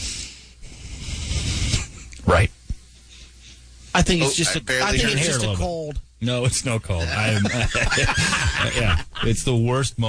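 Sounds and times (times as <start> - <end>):
breathing through left nostril: 0.0 - 2.0
speech: 2.3 - 2.5, 4.0 - 10.0
laughter: 7.0 - 9.4.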